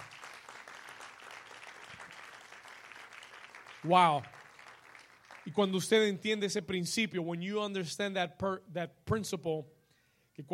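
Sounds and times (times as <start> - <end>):
audience applauding: 0.0 - 6.2
speech: 3.8 - 4.3, 5.5 - 9.8, 10.4 - 10.5.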